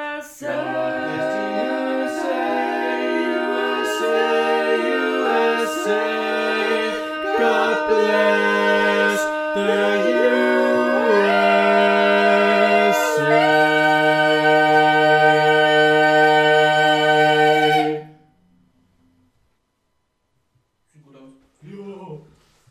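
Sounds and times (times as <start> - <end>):
barbershop tag sung by all parts: 0.4 - 17.9.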